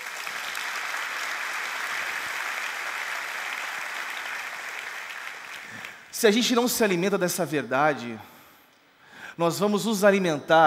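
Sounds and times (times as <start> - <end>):
audience applauding: 0.0 - 6.1
speech: 6.2 - 8.3, 9.4 - 10.6.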